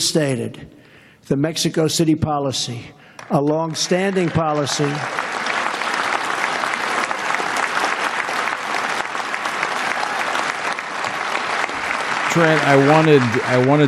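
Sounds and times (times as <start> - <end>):
speech: 0.0 - 5.3, 12.4 - 13.8
long standing ovation applause from a large crowd: 3.2 - 13.8.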